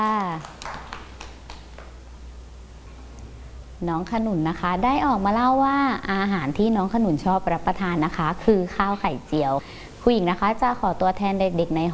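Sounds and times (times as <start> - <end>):
children clapping: 0.0 - 2.0
speech: 3.8 - 11.9.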